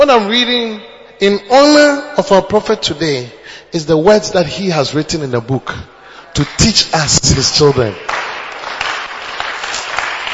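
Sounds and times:
speech: 0.0s - 8.2s
audience clapping: 6.3s - 10.3s.

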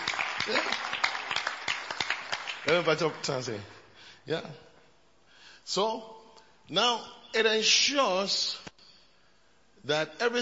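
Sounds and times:
people clapping: 0.0s - 3.8s
speech: 0.5s - 1.0s, 2.7s - 4.7s, 5.6s - 8.7s, 9.8s - 10.3s.

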